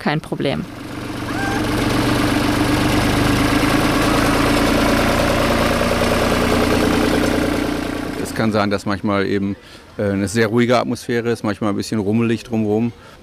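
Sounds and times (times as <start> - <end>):
speech: 0.0 - 0.8, 8.4 - 13.2
tractor driving past: 0.4 - 9.0.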